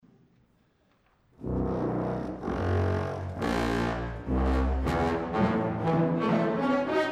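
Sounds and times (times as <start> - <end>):
bass trombone: 1.4 - 7.0.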